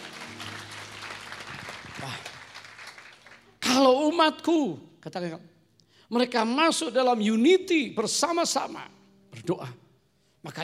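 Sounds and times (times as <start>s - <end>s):
audience clapping: 0.0s - 3.8s
speech: 3.8s - 5.5s, 6.1s - 9.8s, 10.4s - 10.6s.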